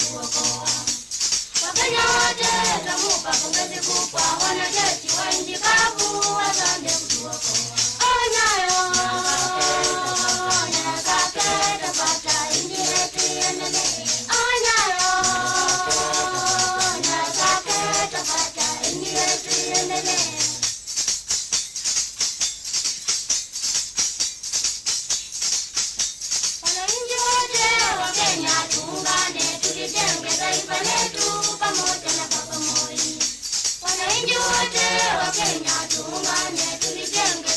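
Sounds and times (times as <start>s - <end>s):
praise song: 0.0s - 20.7s, 26.7s - 37.5s.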